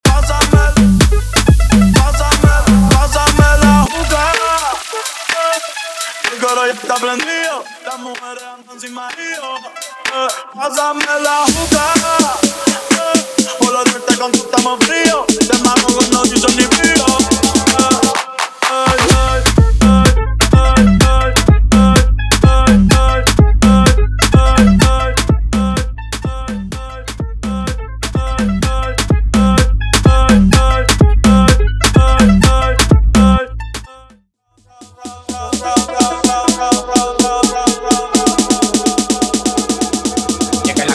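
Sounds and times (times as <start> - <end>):
Afro house remix: 0.0 - 34.1, 34.7 - 40.9.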